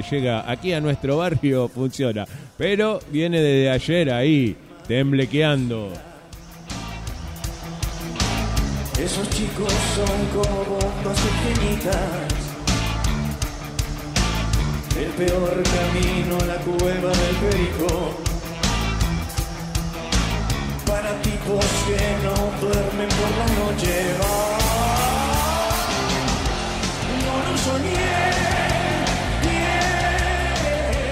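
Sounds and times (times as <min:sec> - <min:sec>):
speech: 0:00.0 - 0:06.1, 0:09.0 - 0:12.4, 0:15.0 - 0:18.3, 0:21.5 - 0:24.8
bass: 0:00.0 - 0:31.1
distorted guitars: 0:00.0 - 0:31.1
live concert recording of a rock song: 0:00.0 - 0:31.1
male voice singing: 0:04.2 - 0:06.5, 0:09.0 - 0:12.7, 0:14.9 - 0:18.4, 0:20.8 - 0:31.1
pounding drums: 0:06.4 - 0:31.1.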